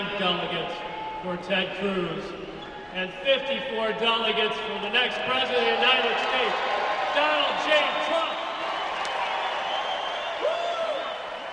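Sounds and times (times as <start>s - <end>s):
speech: 0.2s - 8.3s
large convention crowd cheering and applauding: 5.4s - 11.5s
person whooping: 10.3s - 11.3s.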